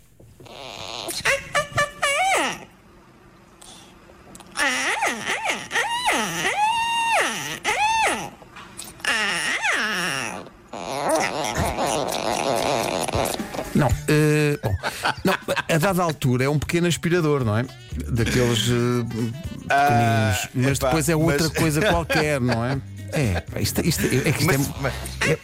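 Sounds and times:
parakeet moaning calls while being petted: 0:00.4 - 0:02.8, 0:04.4 - 0:13.8
laughter: 0:13.8 - 0:16.2, 0:18.1 - 0:25.4
speech: 0:15.0 - 0:25.4.

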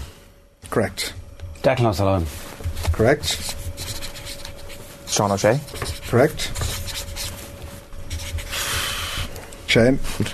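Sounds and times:
speech: 0:00.7 - 0:03.6, 0:05.2 - 0:06.6, 0:09.7 - 0:10.3
pen scribbling on paper signing a name during a quiz: 0:02.8 - 0:07.4, 0:08.0 - 0:09.2.

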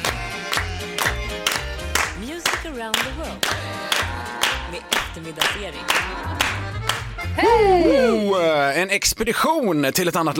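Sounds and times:
people clapping along: 0:00.0 - 0:07.6
speech: 0:02.8 - 0:03.8, 0:04.7 - 0:10.3.

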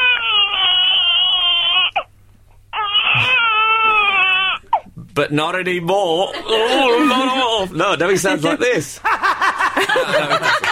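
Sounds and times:
baby boy crying loudly: 0:00.0 - 0:02.1, 0:02.7 - 0:04.8, 0:06.5 - 0:07.6
speech: 0:05.2 - 0:09.2, 0:09.8 - 0:10.7
laughter: 0:06.2 - 0:10.7.

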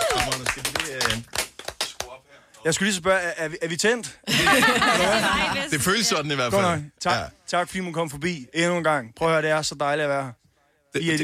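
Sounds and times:
audience clapping: 0:00.0 - 0:02.8
speech: 0:02.6 - 0:11.2
laughter: 0:04.3 - 0:06.0.

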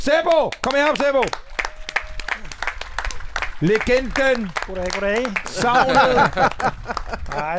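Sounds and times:
speech: 0:00.0 - 0:01.5, 0:03.6 - 0:07.5
audience applause: 0:00.5 - 0:07.5
laughter: 0:05.4 - 0:07.5.

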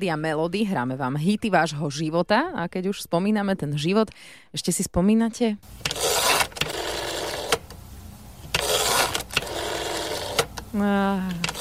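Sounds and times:
speech: 0:00.0 - 0:06.0, 0:10.8 - 0:11.5
landline telephone dialing: 0:05.8 - 0:07.7, 0:08.5 - 0:10.7, 0:11.3 - 0:11.5.

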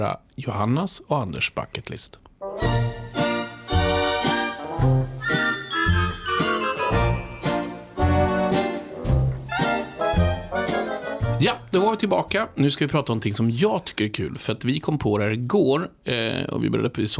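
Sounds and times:
speech: 0:00.0 - 0:02.8, 0:11.4 - 0:17.1
bouncy podcast musical jingle: 0:02.6 - 0:11.5.

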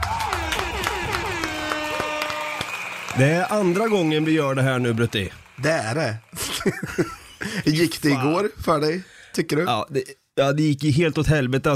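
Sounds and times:
steady clapping: 0:00.0 - 0:07.3
laughter: 0:00.2 - 0:02.3, 0:06.3 - 0:08.5
speech: 0:03.2 - 0:11.7.

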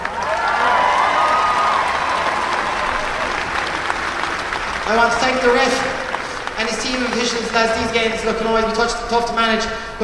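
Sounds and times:
applause for a hurling team: 0:00.0 - 0:07.9
speech: 0:04.9 - 0:05.9, 0:06.6 - 0:10.0.

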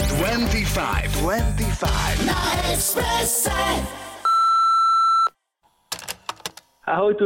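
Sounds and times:
speech: 0:00.2 - 0:04.1, 0:06.9 - 0:07.2
answering machine beep: 0:04.3 - 0:05.4
clattering clicks: 0:05.9 - 0:06.7.

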